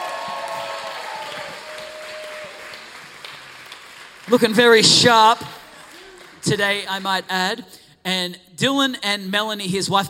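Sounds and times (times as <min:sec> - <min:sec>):
church congregation ovation welcoming a guest preacher: 0:00.0 - 0:07.3
speech: 0:04.3 - 0:05.6, 0:06.4 - 0:10.0.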